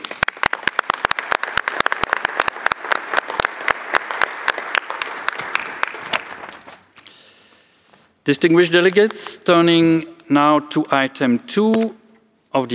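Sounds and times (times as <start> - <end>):
audience applause: 0.0 - 6.7
speech: 8.3 - 12.7.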